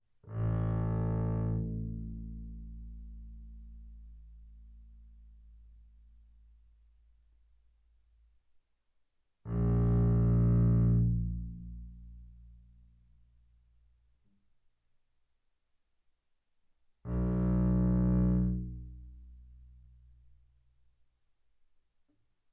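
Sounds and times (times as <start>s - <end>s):
double bass bowed fortissimo on the A string: 0.3s - 5.8s, 9.5s - 13.0s, 17.1s - 20.3s.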